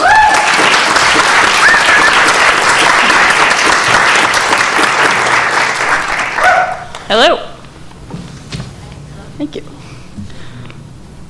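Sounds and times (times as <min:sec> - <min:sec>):
whoops: 0:00.0 - 0:00.8, 0:01.4 - 0:02.4
audience applause welcoming a poet at a poetry reading: 0:00.0 - 0:07.1
speech: 0:07.1 - 0:07.5, 0:09.4 - 0:09.7.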